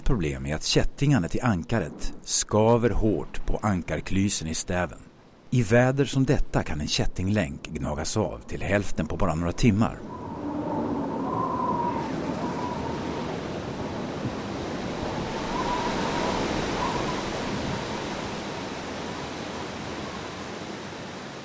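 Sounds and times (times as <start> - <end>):
stormy sea waves: 0.0 - 21.4
speech: 0.1 - 10.2.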